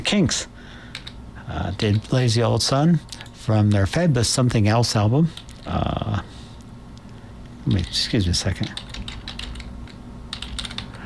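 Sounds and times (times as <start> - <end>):
low steady hum: 0.0 - 11.0
speech: 0.1 - 0.8, 1.5 - 6.3, 7.7 - 8.9
typing on a computer keyboard: 0.9 - 2.2, 8.6 - 11.0.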